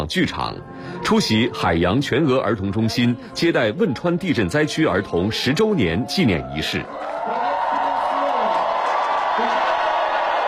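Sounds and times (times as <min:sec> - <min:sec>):
speech: 0:00.0 - 0:07.4
crowd cheering and whoops: 0:05.8 - 0:10.4
crowd applause: 0:06.6 - 0:10.4.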